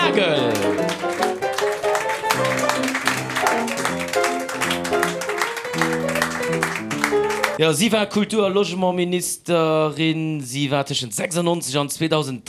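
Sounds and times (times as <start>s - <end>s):
melodic instrumental tune: 0.0s - 7.6s
clapping at a tribute ceremony: 0.4s - 7.6s
speech: 7.6s - 12.4s.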